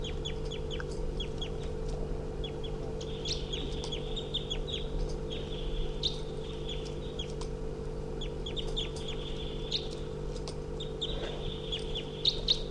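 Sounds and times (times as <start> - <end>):
wild bird chirping calls: 0.0 - 1.8, 2.4 - 7.4, 8.2 - 10.1, 10.8 - 12.6
low mechanical hum: 0.0 - 12.6.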